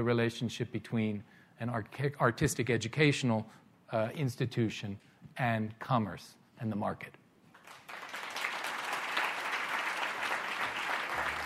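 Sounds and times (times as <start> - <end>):
speech: 0.0 - 7.8
audience clapping: 7.5 - 11.4.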